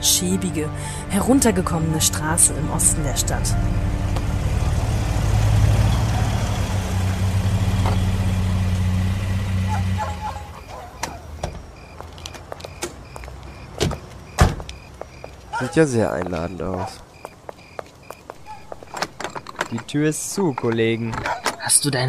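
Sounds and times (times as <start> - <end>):
speech: 0.0 - 4.2, 15.6 - 17.0, 19.7 - 22.0
car engine drone driving through streets: 0.7 - 15.1, 18.4 - 22.0
sharp clicks and knocks: 18.7 - 21.8.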